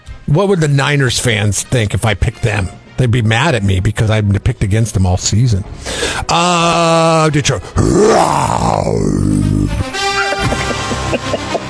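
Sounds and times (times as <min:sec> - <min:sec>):
speech: 0:00.3 - 0:09.3
voice imitating a lion roar: 0:07.8 - 0:09.8
laughter: 0:10.0 - 0:11.6.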